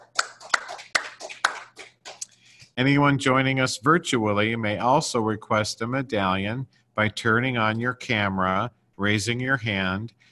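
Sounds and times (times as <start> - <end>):
few hands clapping at an OA meeting: 0.0 - 2.4
speech: 2.8 - 10.2.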